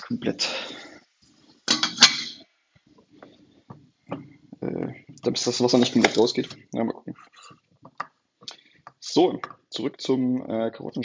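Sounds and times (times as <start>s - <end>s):
speech: 0.1s - 0.8s, 5.2s - 7.4s, 9.2s - 11.0s
lid set onto a cooking pot clanging: 1.7s - 2.4s.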